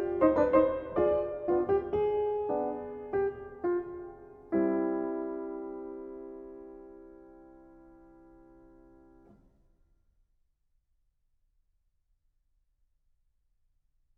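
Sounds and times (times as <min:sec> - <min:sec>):
prelude and fugue: 0:00.0 - 0:09.4.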